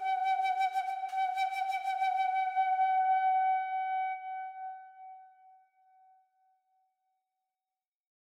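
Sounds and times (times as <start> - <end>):
Native American flute: 0.0 - 6.3.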